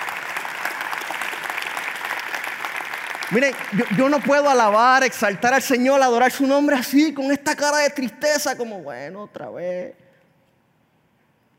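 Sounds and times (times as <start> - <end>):
audience applause: 0.0 - 5.6
speech: 3.3 - 10.0.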